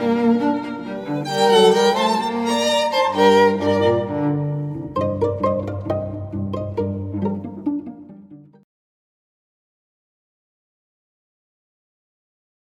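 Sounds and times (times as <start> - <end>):
string trio playing tango: 0.0 - 8.6.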